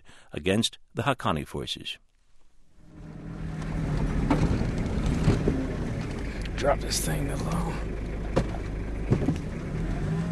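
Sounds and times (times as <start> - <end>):
speech: 0.3 - 2.0, 6.6 - 7.9
Toyota truck engine grinding up steep dirt incline: 2.8 - 10.2.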